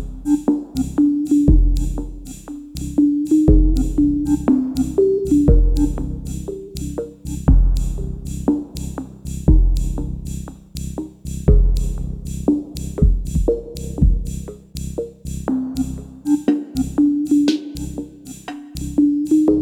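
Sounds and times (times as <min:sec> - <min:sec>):
slow chill drum machine synth music at 30 BPM: 0:00.0 - 0:19.6.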